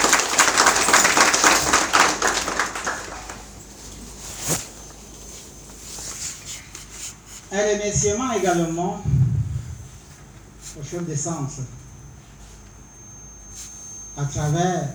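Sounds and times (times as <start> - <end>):
audience applause: 0.0 - 3.8
speech: 7.6 - 9.2, 10.8 - 11.8, 14.2 - 14.9.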